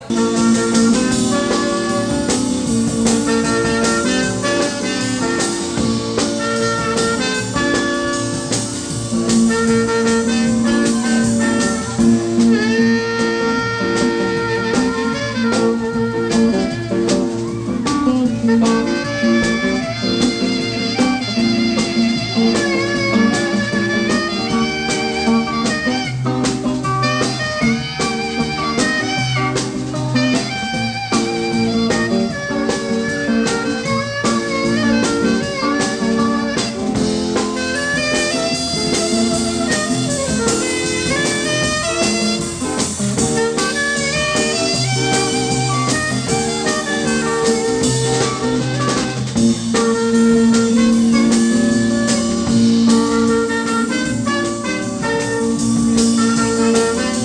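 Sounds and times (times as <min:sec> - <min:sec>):
saxophone solo: 0:00.0 - 0:57.2.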